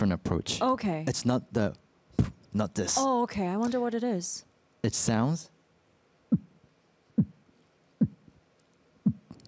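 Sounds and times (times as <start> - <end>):
speech: 0.0 - 1.8, 2.5 - 5.6
beatboxed kicks imitating a heartbeat: 2.1 - 2.4, 6.3 - 6.6, 7.2 - 7.4, 8.0 - 8.2, 9.0 - 9.4.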